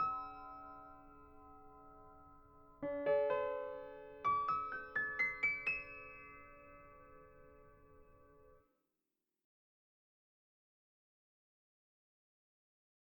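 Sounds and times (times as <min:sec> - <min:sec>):
piano bar music: 0:00.0 - 0:08.5.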